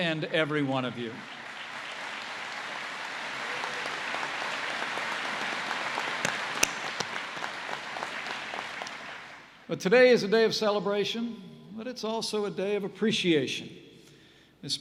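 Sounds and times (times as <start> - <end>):
speech: 0.0 - 1.4, 9.7 - 13.8
graduation audience applauding: 0.0 - 9.6.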